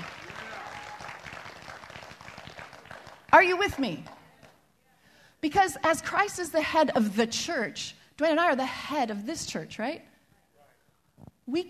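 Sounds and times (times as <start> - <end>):
audience clapping and applauding: 0.0 - 4.6
speech: 3.3 - 4.1, 5.4 - 10.1, 11.5 - 11.6.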